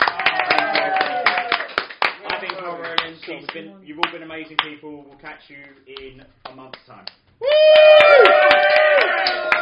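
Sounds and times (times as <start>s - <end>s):
faint voice or cheer: 0.0s - 1.8s, 7.4s - 9.6s
crowd applause: 0.0s - 3.1s, 7.5s - 9.6s
speech: 3.3s - 8.0s.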